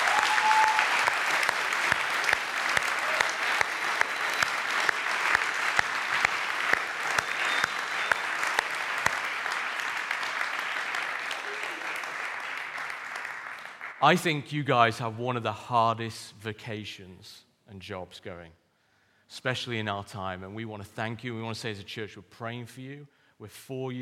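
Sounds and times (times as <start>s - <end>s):
audience applauding teachers: 0.0s - 14.2s
speech: 14.0s - 18.6s, 19.3s - 24.0s.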